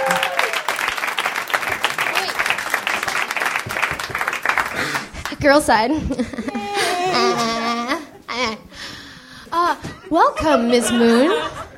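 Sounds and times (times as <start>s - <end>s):
audience applause for a guest onstage at a live show: 0.0s - 5.4s
speech: 5.4s - 7.7s, 8.4s - 8.7s, 9.6s - 11.6s
laughter: 5.9s - 8.7s, 9.6s - 11.7s.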